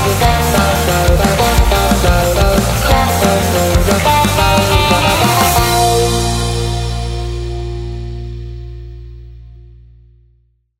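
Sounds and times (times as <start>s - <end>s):
cheerful children: 0.0s - 7.0s.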